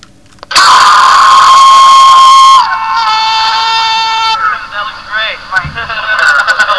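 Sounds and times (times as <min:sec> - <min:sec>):
person screaming: 0:00.5 - 0:04.6.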